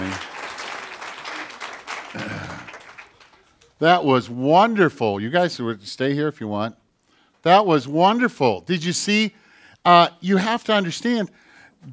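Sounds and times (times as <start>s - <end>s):
applause for children: 0.0s - 3.8s
speech: 3.8s - 6.8s, 7.4s - 11.9s.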